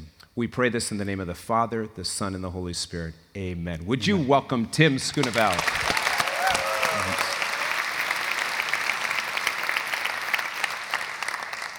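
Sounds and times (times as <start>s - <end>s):
speech: 0.4s - 5.9s
audience clapping: 5.1s - 11.7s.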